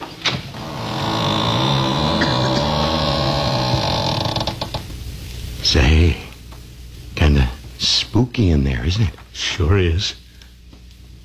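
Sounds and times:
door being opened: 0:00.0 - 0:05.0
speech: 0:05.7 - 0:06.2, 0:08.2 - 0:10.2.

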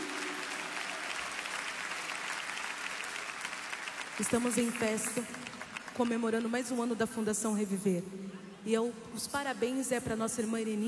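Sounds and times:
audience applauding: 0:00.0 - 0:06.6
speech: 0:04.2 - 0:10.8.

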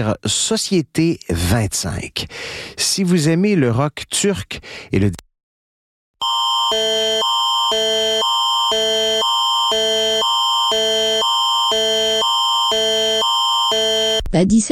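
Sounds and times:
speech: 0:00.0 - 0:05.2, 0:06.7 - 0:08.0, 0:14.3 - 0:14.6
Canadian tornado warning two-tone emergency alert: 0:06.2 - 0:14.2.

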